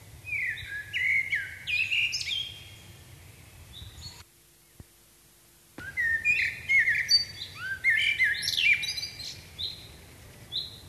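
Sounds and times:
common blackbird singing: 0:00.2 - 0:02.9, 0:05.8 - 0:10.8.

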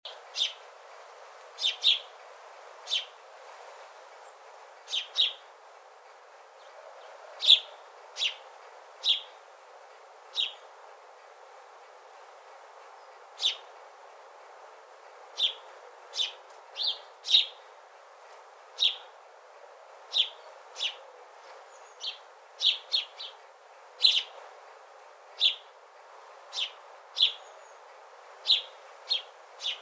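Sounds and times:
background hiss: 0:00.1 - 0:29.8
house sparrow chirping: 0:00.4 - 0:00.6, 0:01.6 - 0:02.1, 0:02.9 - 0:03.2, 0:04.9 - 0:05.4, 0:06.6 - 0:08.4, 0:09.0 - 0:09.4, 0:10.3 - 0:10.7, 0:13.0 - 0:13.7, 0:15.4 - 0:17.7, 0:18.8 - 0:19.1, 0:20.1 - 0:21.0, 0:21.7 - 0:23.4, 0:24.0 - 0:24.4, 0:25.4 - 0:25.7, 0:26.5 - 0:29.8.

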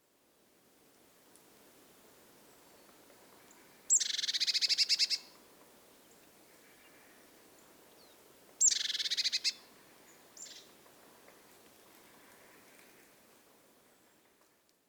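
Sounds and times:
Cyanistes caeruleus: 0:03.9 - 0:05.3, 0:08.6 - 0:09.6.

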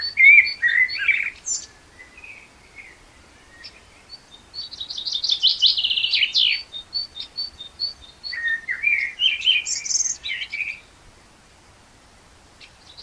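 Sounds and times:
Common blackbird singing, Turdus merula: 0:00.0 - 0:10.9, 0:12.6 - 0:13.0.

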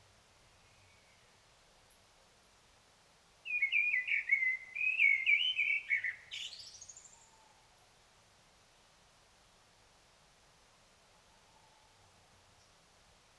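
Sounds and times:
Common blackbird singing: 0:03.5 - 0:07.2.

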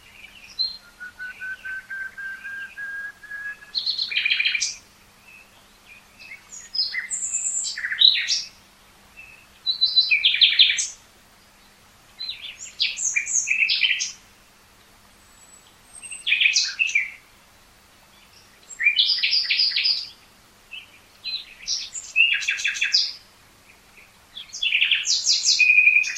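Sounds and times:
common nightingale song: 0:00.0 - 0:14.4, 0:15.0 - 0:26.1.

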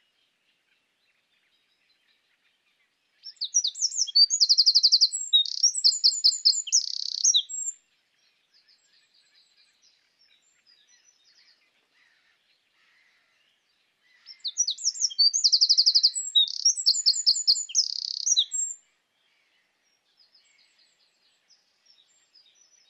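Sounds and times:
Eurasian wren singing: 0:03.3 - 0:07.7, 0:14.4 - 0:18.8.

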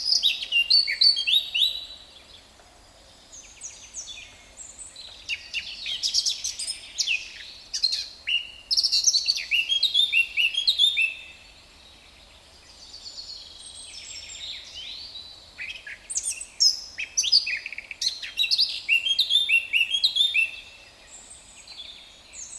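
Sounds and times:
Sylvia atricapilla Eurasian blackcap singing: 0:00.0 - 0:02.0, 0:05.0 - 0:11.4, 0:15.6 - 0:20.7.

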